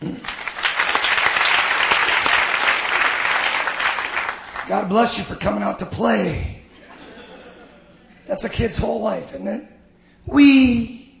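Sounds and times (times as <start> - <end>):
crowd applauding: 0.0 - 4.7
speech: 4.7 - 6.6, 8.3 - 9.7, 10.3 - 11.0
laughter: 6.7 - 8.2.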